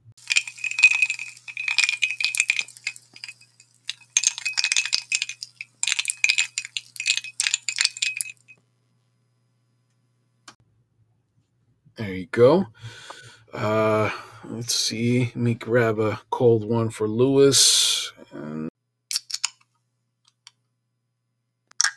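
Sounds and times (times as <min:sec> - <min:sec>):
ice cubes clinking into a glass: 0:00.2 - 0:08.6
speech: 0:12.3 - 0:13.0, 0:14.6 - 0:18.7.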